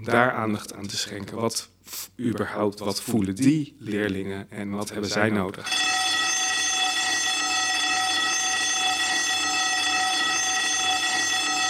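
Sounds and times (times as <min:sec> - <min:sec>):
speech: 0:00.0 - 0:05.9
school bell ringing: 0:05.6 - 0:11.6.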